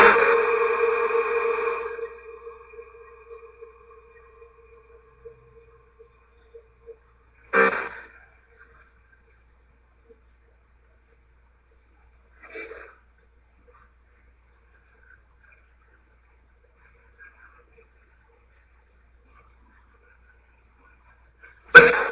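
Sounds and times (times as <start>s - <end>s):
living room portal sound: 0.0s - 6.7s.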